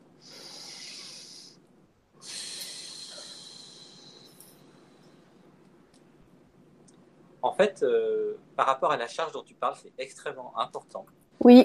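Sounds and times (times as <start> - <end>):
deep breath: 0.2 - 1.6, 2.2 - 5.1
speech: 7.5 - 11.6.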